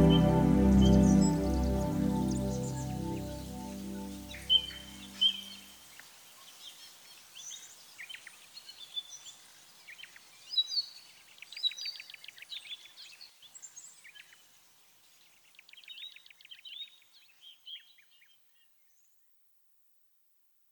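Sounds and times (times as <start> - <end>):
keyboards: 0.0 - 5.2.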